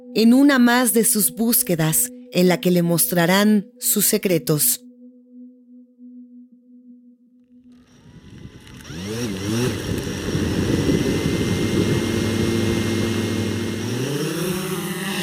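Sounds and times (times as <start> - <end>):
speech: 0.2 - 4.9
white record-sized drone buzzing: 4.9 - 15.2.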